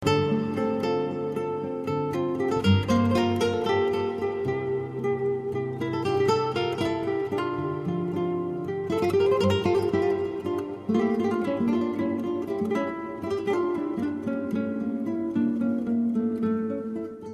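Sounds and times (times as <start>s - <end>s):
guitar: 0.0s - 17.3s.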